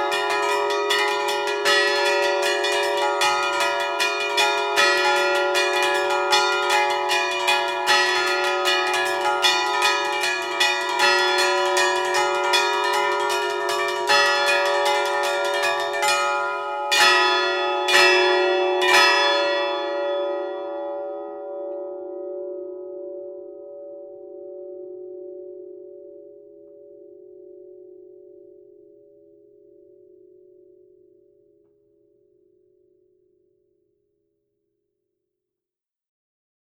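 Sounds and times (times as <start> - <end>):
bells ringing: 0.0 - 21.4.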